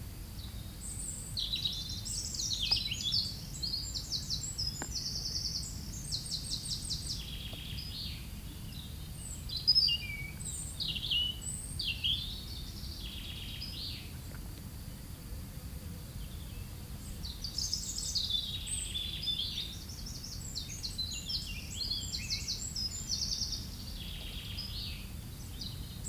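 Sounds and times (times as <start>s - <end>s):
European robin song: 0.0s - 15.2s, 16.1s - 26.0s.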